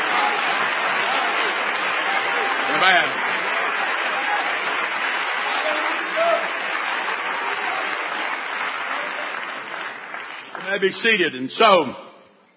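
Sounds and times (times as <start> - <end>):
audience clapping: 0.0 - 11.9
speech: 2.8 - 3.3, 10.8 - 12.0.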